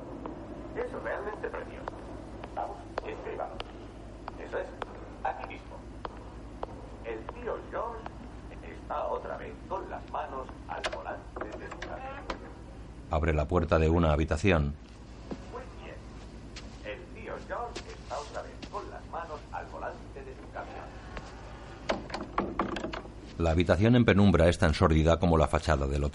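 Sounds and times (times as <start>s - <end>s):
radio playing in a hallway: 0.7s - 13.8s, 15.3s - 16.2s, 16.8s - 21.8s
speech: 13.1s - 15.0s, 23.4s - 26.1s.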